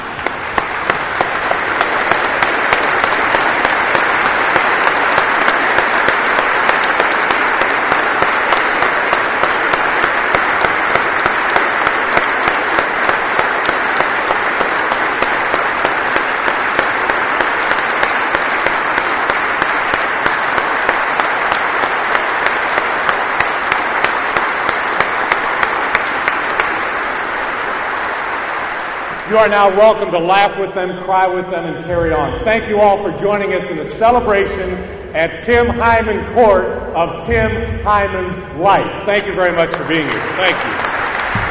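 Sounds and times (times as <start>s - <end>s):
audience applause: 0.0s - 30.2s, 38.6s - 41.4s
speech: 29.4s - 40.8s.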